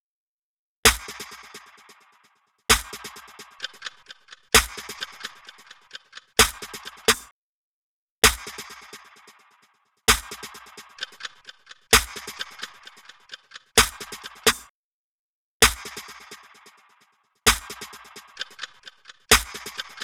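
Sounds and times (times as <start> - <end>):
snare drum: 0.9 - 1.6, 2.7 - 7.3, 8.2 - 9.0, 10.1 - 14.7, 15.6 - 16.4, 17.5 - 20.0.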